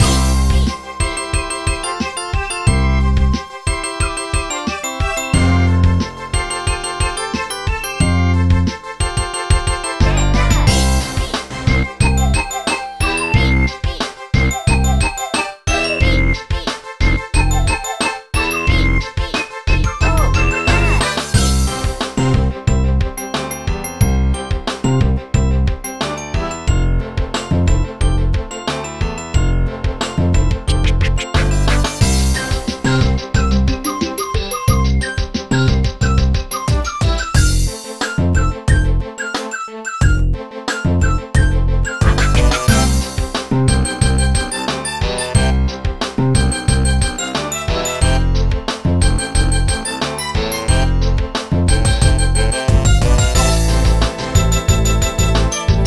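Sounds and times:
world map game music: 0.0 - 55.8.

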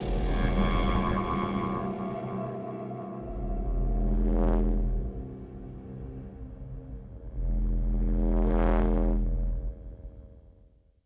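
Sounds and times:
reveal music stinger: 0.0 - 9.6.

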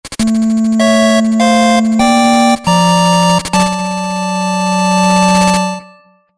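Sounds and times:
8-bit boss clear fanfare: 0.1 - 6.0.

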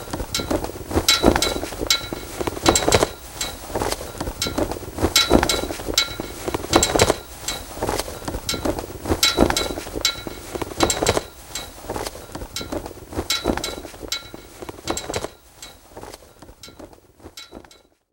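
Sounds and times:
generic ambience: 0.0 - 18.0.

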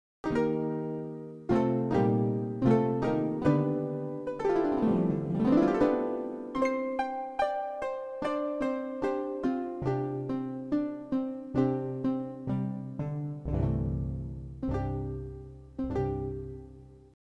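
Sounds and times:
magic harp: 0.3 - 17.0.

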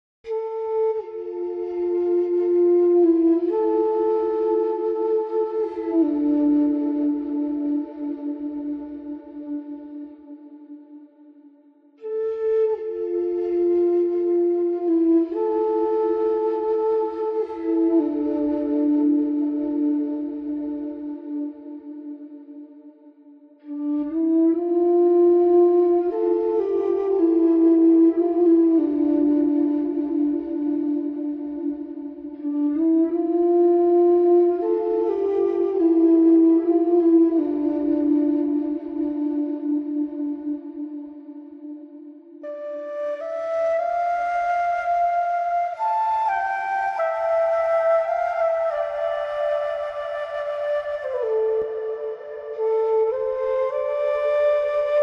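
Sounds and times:
flute: 0.0 - 55.0.

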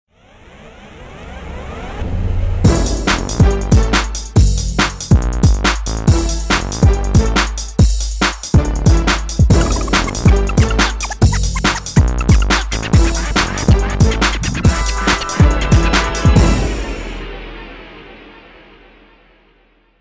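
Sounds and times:
music beat: 2.6 - 17.4.

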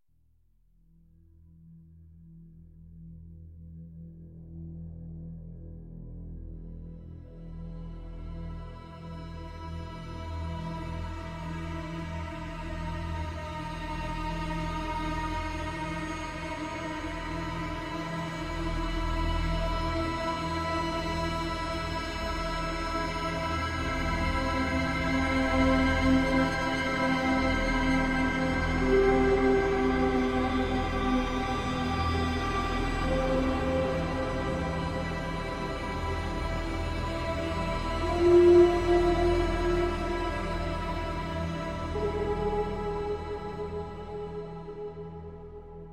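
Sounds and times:
ambient synth pad: 10.1 - 45.9.

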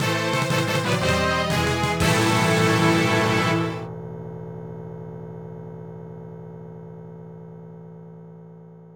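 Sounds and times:
tune: 0.0 - 3.9.

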